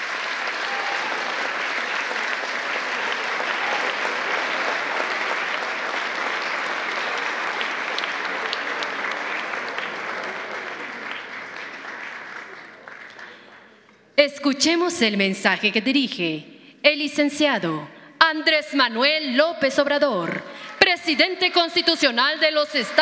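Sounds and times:
audience applause: 0:00.0 - 0:13.8, 0:20.6 - 0:23.0
speech: 0:14.2 - 0:23.0.

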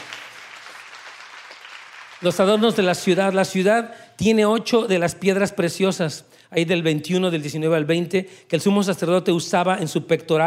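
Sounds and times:
audience applause: 0:00.0 - 0:02.9
speech: 0:02.2 - 0:10.4.

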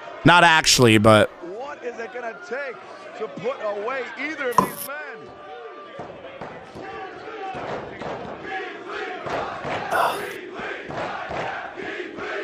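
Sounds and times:
speech: 0:00.2 - 0:05.4
pro wrestling arena crowd trading dueling chants: 0:08.3 - 0:12.4.

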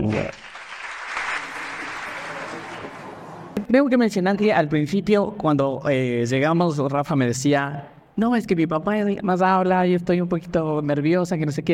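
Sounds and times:
audience applause: 0:00.0 - 0:03.6
speech: 0:00.1 - 0:00.5, 0:03.7 - 0:11.7.

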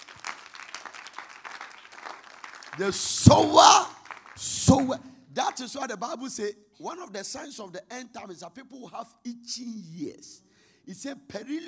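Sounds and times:
audience clapping: 0:00.0 - 0:05.0
speech: 0:02.8 - 0:11.6.

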